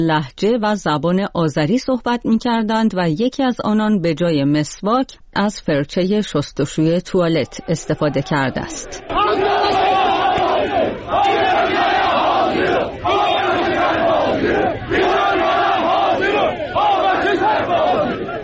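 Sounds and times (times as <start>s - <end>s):
speech: 0.0s - 9.8s
crowd of protesters chanting at a gathering in Tabriz: 7.4s - 18.4s.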